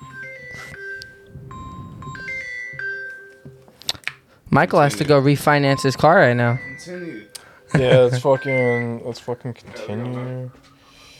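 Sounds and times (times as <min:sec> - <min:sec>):
phone ringing with electronic melodic ringtone: 0:00.0 - 0:03.9, 0:04.8 - 0:11.0
faint low rumble: 0:01.2 - 0:02.5
speech: 0:04.5 - 0:10.7.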